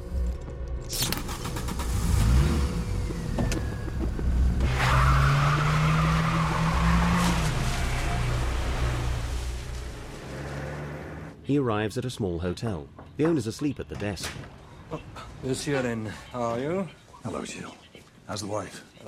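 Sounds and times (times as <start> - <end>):
small car engine rumbling and revving while driving off: 1.2 - 11.4
small car tires squealing: 2.1 - 11.3
speech: 11.5 - 19.0.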